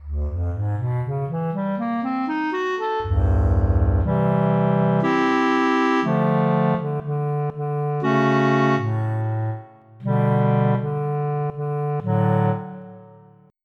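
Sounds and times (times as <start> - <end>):
clarinet: 0.0 - 13.5.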